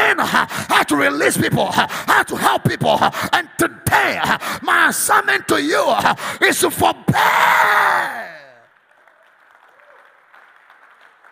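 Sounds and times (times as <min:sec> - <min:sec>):
speech: 0:00.3 - 0:08.3
audience clapping: 0:08.5 - 0:11.3.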